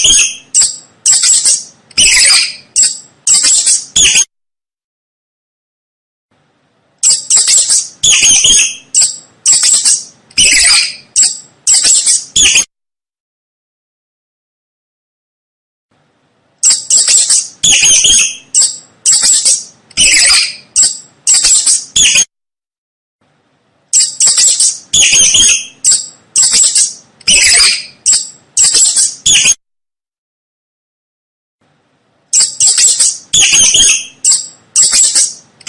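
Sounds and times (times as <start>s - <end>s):
mouse squeaking: 0.0s - 4.3s, 7.0s - 12.7s, 16.6s - 22.3s, 23.9s - 29.6s, 32.3s - 35.6s.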